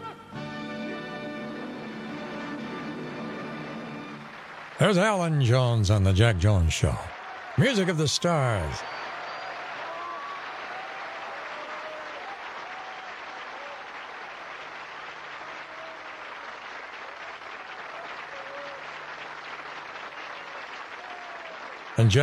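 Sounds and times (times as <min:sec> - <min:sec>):
audience applauding: 0:01.6 - 0:22.2
speech: 0:04.8 - 0:09.0, 0:22.0 - 0:22.2
faint whoops and voices in the crowd: 0:06.8 - 0:14.1, 0:17.8 - 0:19.0, 0:20.2 - 0:21.7.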